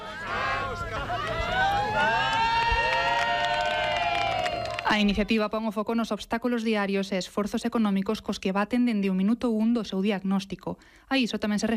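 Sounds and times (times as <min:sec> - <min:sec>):
crowd cheering: 0:00.0 - 0:05.5
speech: 0:04.9 - 0:11.7.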